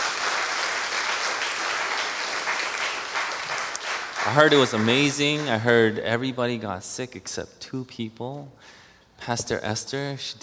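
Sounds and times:
church congregation applauding to welcome a team back: 0.0 - 5.8
speech: 4.2 - 10.4.

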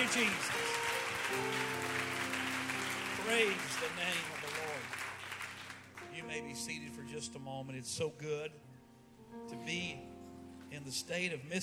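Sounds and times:
speech: 0.0 - 1.9, 3.2 - 5.0, 6.1 - 8.7, 9.3 - 10.1, 10.7 - 11.6
audience clapping hands: 0.0 - 6.2
low sustained musical chord: 0.0 - 11.4.

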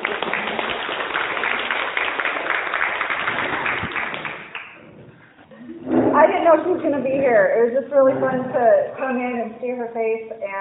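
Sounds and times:
audience applause: 0.0 - 5.3
speech: 6.8 - 10.5.

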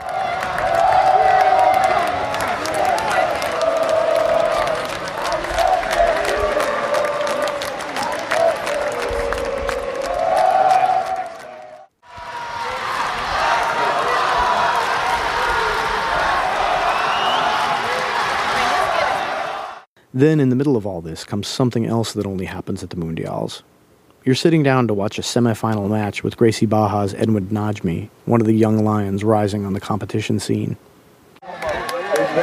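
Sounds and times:
people clapping: 0.0 - 19.8, 31.4 - 32.4
jiu-jitsu teams' crowd roaring: 0.0 - 19.9, 31.4 - 32.4
people shouting cheers: 0.0 - 19.9, 31.4 - 32.4
speech: 20.2 - 30.9.

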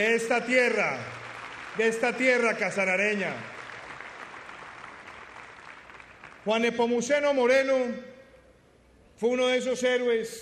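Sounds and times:
speech: 0.0 - 1.2, 1.8 - 3.6, 6.4 - 8.1, 9.2 - 10.4
crowd applauding: 0.0 - 6.6.

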